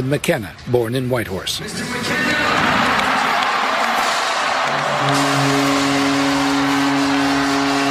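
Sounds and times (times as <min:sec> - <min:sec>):
speech: 0:00.0 - 0:02.6, 0:05.0 - 0:05.6
arena crowd cheering: 0:01.8 - 0:07.8
steady low droning horn-like tone: 0:04.9 - 0:07.8.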